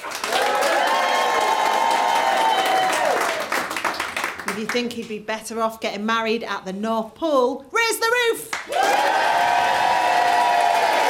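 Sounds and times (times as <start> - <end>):
studio audience cheering: 0.0 - 3.8, 8.7 - 11.0
speech: 4.6 - 9.5.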